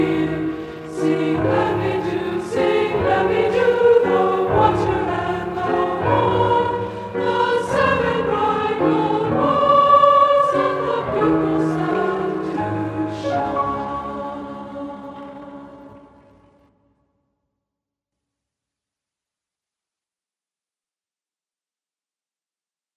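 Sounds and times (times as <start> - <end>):
women's chorale singing Christmas music: 0.0 - 16.4.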